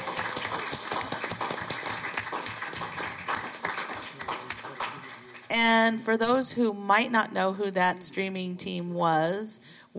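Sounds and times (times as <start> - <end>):
audience applause: 0.0 - 5.5
speech: 5.5 - 9.9.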